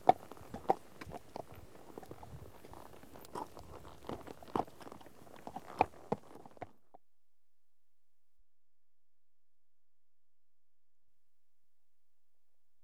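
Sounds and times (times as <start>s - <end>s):
horse hooves clip-clopping at walk on tarmac: 0.0s - 6.8s.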